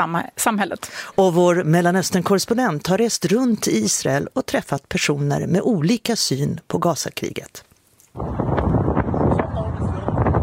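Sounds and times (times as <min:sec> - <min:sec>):
speech: 0:00.0 - 0:08.6
light wind over Kobis hill in southern Israel buffeting microphone: 0:08.2 - 0:10.4.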